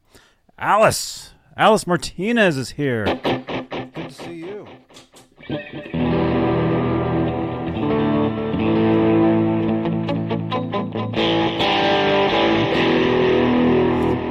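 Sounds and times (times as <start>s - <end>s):
speech: 0.6s - 3.4s
electric guitar with chorus effect: 3.0s - 14.2s.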